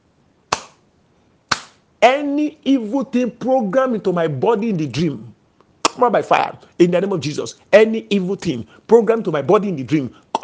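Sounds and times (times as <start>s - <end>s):
slaps against the body: 0.5s - 0.8s, 1.5s - 1.8s
speech: 2.0s - 5.4s, 6.0s - 10.4s.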